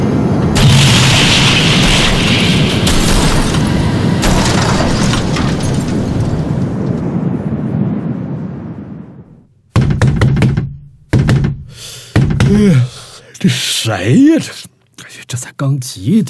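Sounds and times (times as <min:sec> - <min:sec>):
wind roaring: 0:00.0 - 0:10.7
heavy knocking on a door: 0:09.7 - 0:12.7
speech: 0:13.8 - 0:16.2.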